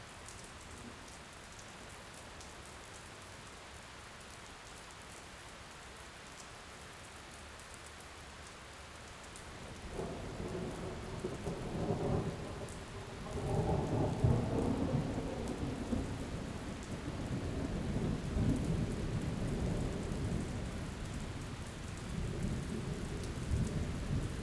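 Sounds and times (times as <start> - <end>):
storm heard from inside a garage with door open: 9.7 - 24.4.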